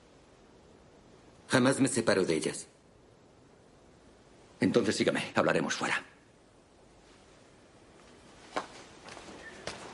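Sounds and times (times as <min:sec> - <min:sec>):
speech: 0:01.5 - 0:02.8, 0:04.6 - 0:06.1
soft footsteps crossing a monastery courtyard: 0:07.0 - 0:09.9.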